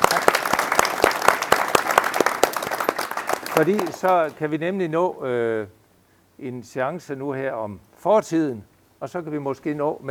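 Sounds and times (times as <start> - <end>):
audience applause: 0.0 - 4.4
speech: 3.6 - 5.8, 6.4 - 10.1.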